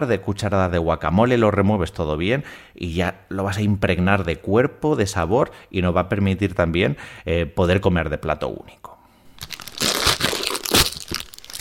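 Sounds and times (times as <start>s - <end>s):
speech: 0.0s - 8.9s
plastic potato chip bag crinkling and crunching: 9.3s - 11.5s.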